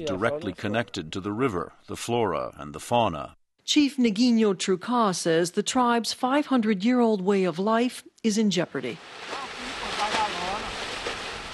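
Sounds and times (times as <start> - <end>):
speech: 0.0 - 9.5
wind blowing across a riverside camp: 8.9 - 11.5.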